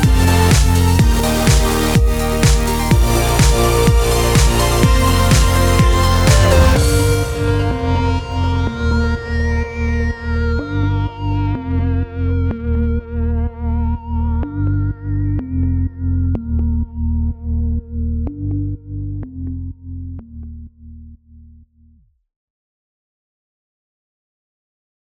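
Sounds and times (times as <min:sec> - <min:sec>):
entertainment background music bed: 0:00.0 - 0:17.2.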